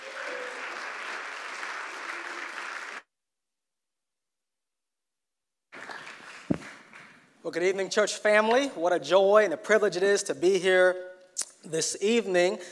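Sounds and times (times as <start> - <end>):
congregation applause at Pacific Baptist Church welcoming a guest speaker: 0.0 - 3.1, 5.8 - 7.3
speech: 7.4 - 12.7.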